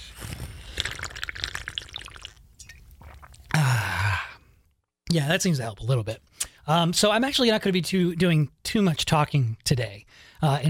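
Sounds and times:
person drinking water in gulps and slurps: 0.6 - 4.6
loud satisfied exhale: 3.5 - 4.5
speech: 5.1 - 10.6.

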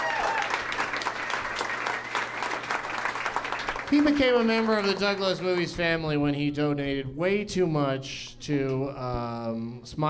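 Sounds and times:
audience applause: 0.0 - 5.8
speech: 3.9 - 10.0.

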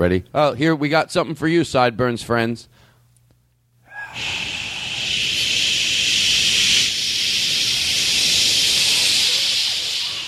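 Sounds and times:
speech: 0.0 - 2.8
several people hissing into a microphone: 3.9 - 10.2.

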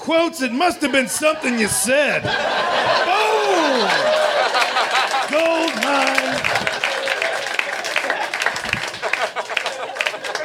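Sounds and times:
speech: 0.0 - 4.2
laughter: 0.2 - 10.4
comedy audience applause: 2.6 - 10.4.

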